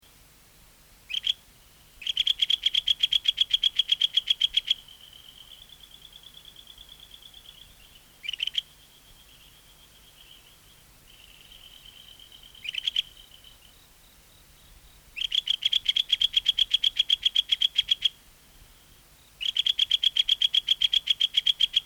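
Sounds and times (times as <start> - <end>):
Ryukyu kajika frog Buergeria japonica chirping calls: 1.1 - 1.4, 2.0 - 18.2, 19.4 - 21.8.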